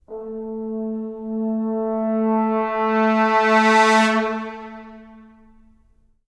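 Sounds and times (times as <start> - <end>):
trombone stingers: 0.1 - 5.4.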